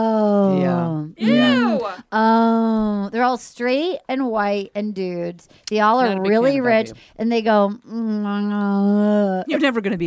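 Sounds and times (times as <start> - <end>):
voice imitating the bored groan of a wealthy comedy-club audience: 0.4 - 2.0
speech: 2.1 - 2.6, 3.2 - 10.0.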